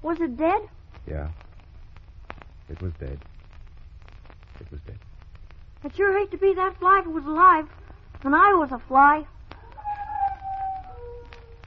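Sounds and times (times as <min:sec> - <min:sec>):
speech: 0:00.0 - 0:01.4, 0:02.7 - 0:03.3, 0:04.6 - 0:05.1, 0:05.8 - 0:09.4
coyote howling: 0:09.5 - 0:11.6.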